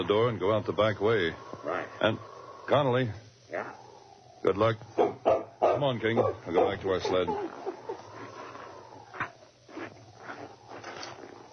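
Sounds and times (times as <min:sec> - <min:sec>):
speech: 0:00.0 - 0:03.8, 0:04.4 - 0:05.1, 0:05.8 - 0:07.6
dog barking: 0:05.0 - 0:07.4.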